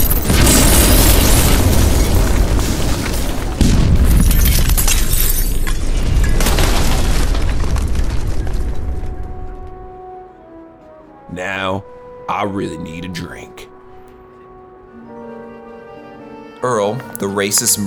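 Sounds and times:
thermal detonator explosion in an alley full of droids: 0.0s - 10.0s
speech: 12.4s - 13.5s, 16.6s - 17.8s.

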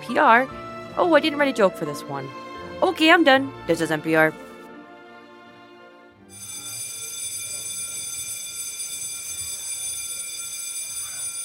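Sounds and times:
speech: 0.1s - 4.4s
long bell ringing: 6.3s - 11.4s.

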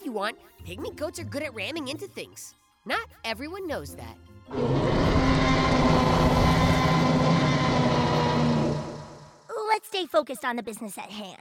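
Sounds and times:
speech: 0.2s - 6.2s, 9.8s - 11.3s
air rushing through pneumatic delivery tubes: 4.5s - 9.4s.

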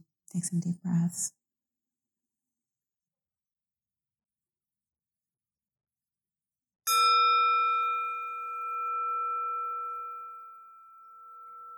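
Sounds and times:
speech: 0.3s - 1.4s
meditation bell ringing to close practice: 6.9s - 11.7s.

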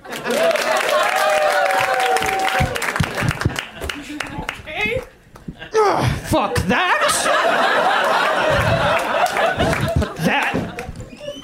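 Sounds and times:
laughter: 0.0s - 1.8s, 3.1s - 4.4s, 5.6s - 11.4s
round of applause: 0.0s - 4.6s, 7.9s - 10.9s.

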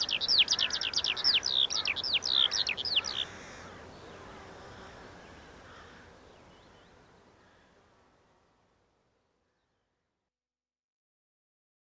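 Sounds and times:
Eurasian skylark song: 0.0s - 7.7s.

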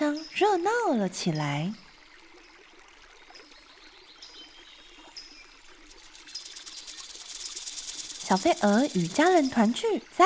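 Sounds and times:
babbling stream: 0.0s - 10.2s
speech: 0.4s - 1.8s, 8.3s - 10.2s.

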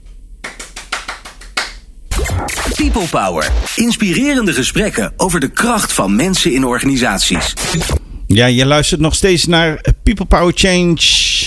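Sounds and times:
handclaps: 0.4s - 1.9s
speech: 2.5s - 11.4s.

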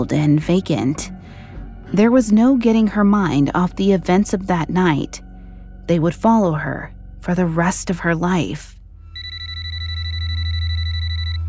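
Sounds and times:
speech: 0.0s - 1.2s, 1.9s - 5.2s, 5.9s - 8.8s
low constant hum: 0.0s - 11.4s
telephone ringing: 9.2s - 11.4s.

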